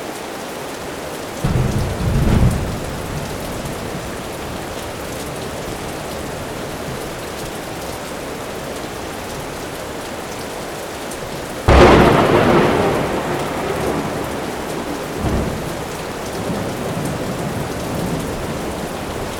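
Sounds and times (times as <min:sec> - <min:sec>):
thunderstorm: 0:01.4 - 0:07.3, 0:11.7 - 0:19.3.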